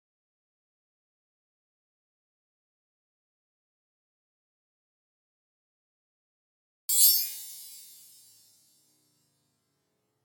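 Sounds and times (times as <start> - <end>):
ice shimmer: 6.9 - 8.7.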